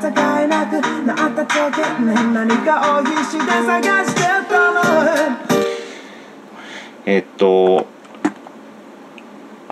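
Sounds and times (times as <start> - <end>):
speech: 0.0 - 5.6, 7.1 - 7.9
dense melodic music loop with punchy beats under resonant filter sweep: 0.0 - 5.9.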